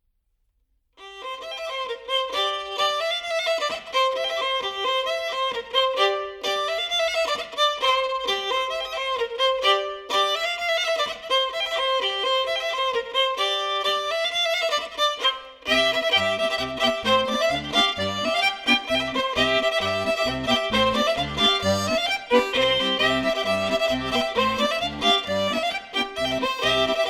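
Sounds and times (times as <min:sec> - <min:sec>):
polka music: 0:01.5 - 0:27.0.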